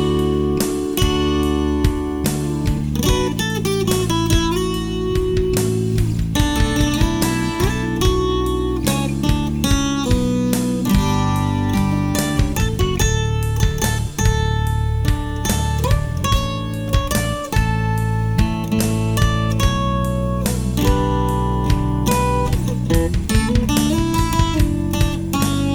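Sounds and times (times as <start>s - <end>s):
ambient guitar melody: 0.0s - 25.7s.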